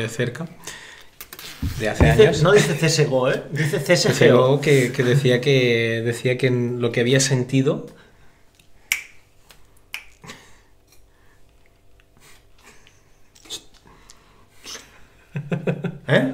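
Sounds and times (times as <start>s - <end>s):
speech: 0.0s - 0.9s, 1.6s - 8.0s
finger snapping: 8.6s - 10.3s.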